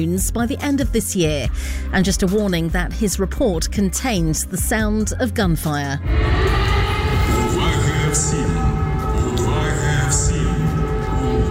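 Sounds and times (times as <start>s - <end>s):
speech: 0.0s - 8.5s
air raid warning siren: 6.0s - 11.4s.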